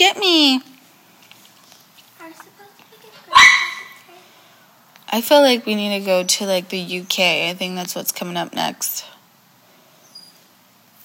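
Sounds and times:
speech: 0:00.0 - 0:00.7, 0:05.1 - 0:09.2
dog barking: 0:03.3 - 0:04.1.

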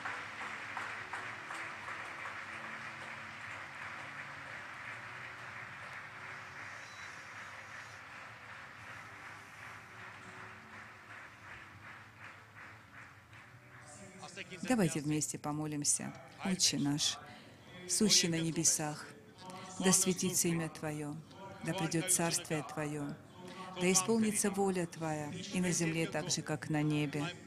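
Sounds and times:
audience applauding: 0:00.0 - 0:15.2
speech: 0:14.4 - 0:17.3, 0:17.9 - 0:19.2, 0:19.8 - 0:27.4.

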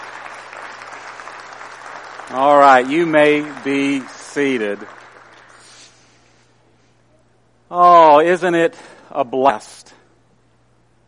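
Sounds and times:
large audience applause: 0:00.0 - 0:06.0
speech: 0:02.3 - 0:05.0, 0:07.7 - 0:10.0.

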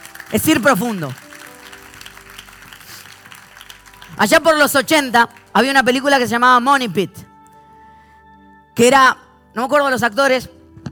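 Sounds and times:
audience applause: 0:00.0 - 0:05.6
speech: 0:00.3 - 0:01.2, 0:04.2 - 0:07.3, 0:08.8 - 0:10.6.

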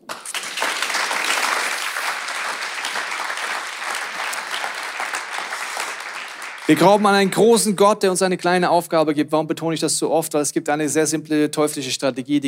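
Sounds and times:
audience applause: 0:00.0 - 0:07.8
speech: 0:06.7 - 0:12.4.

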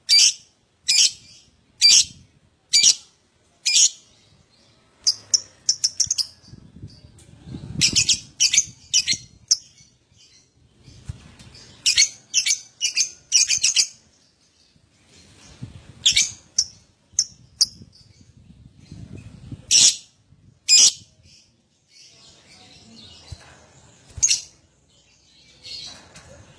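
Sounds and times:
lovebird chirping: 0:00.0 - 0:07.1, 0:07.7 - 0:14.8, 0:16.0 - 0:18.3, 0:19.7 - 0:23.4.

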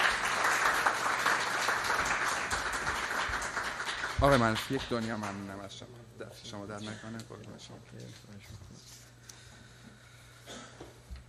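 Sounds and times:
audience applause: 0:00.0 - 0:05.4
speech: 0:04.2 - 0:09.0.

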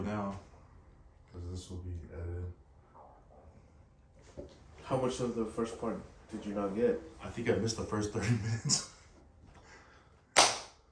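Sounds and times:
speech: 0:00.0 - 0:00.5, 0:01.4 - 0:02.6, 0:04.4 - 0:09.0
hand clap for recording sync: 0:10.3 - 0:10.9.

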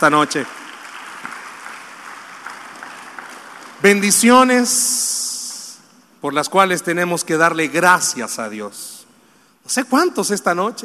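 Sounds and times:
speech: 0:00.0 - 0:00.6, 0:03.8 - 0:05.2, 0:06.2 - 0:09.0, 0:09.6 - 0:10.8
audience applause: 0:00.0 - 0:04.5.

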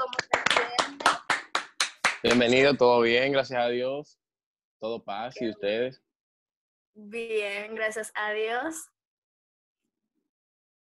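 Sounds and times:
applause: 0:00.0 - 0:02.8
speech: 0:02.2 - 0:04.2, 0:04.8 - 0:06.0, 0:07.0 - 0:08.9.

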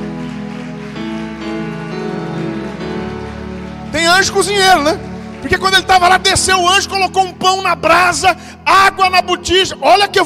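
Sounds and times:
audience applause: 0:00.0 - 0:06.8
speech: 0:04.2 - 0:10.2.

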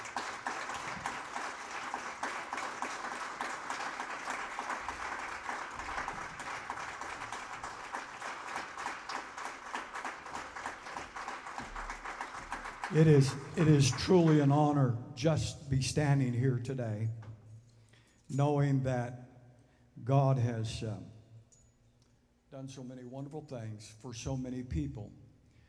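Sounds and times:
audience applause: 0:00.0 - 0:14.8
speech: 0:12.9 - 0:17.2, 0:18.3 - 0:19.2, 0:20.0 - 0:21.1, 0:22.6 - 0:25.2.

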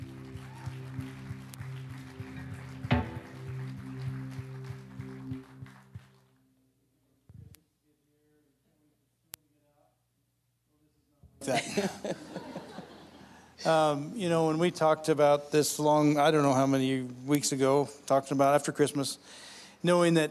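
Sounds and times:
audience clapping: 0:00.0 - 0:06.4
speech: 0:11.4 - 0:12.3, 0:13.6 - 0:20.2
laughter: 0:11.4 - 0:14.0.

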